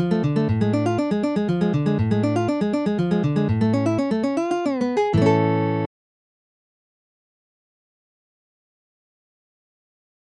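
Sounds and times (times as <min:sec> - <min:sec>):
lute prelude on guitar: 0:00.0 - 0:05.9.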